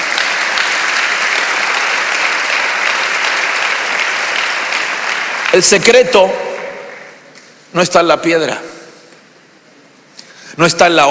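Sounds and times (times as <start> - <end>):
audience clapping: 0.0 - 7.6
speech: 5.5 - 6.5, 7.7 - 8.7, 10.6 - 11.0.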